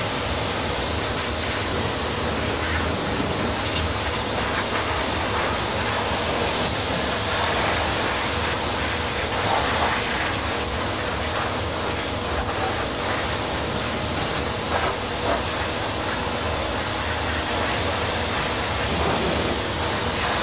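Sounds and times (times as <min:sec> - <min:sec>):
cleaning with a steam jet: 0:00.0 - 0:20.4.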